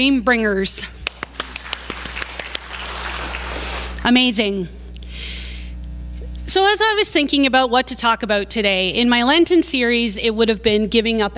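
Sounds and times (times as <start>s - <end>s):
speech: 0.0s - 1.0s, 4.0s - 4.8s, 6.5s - 11.3s
round of applause: 1.0s - 4.1s.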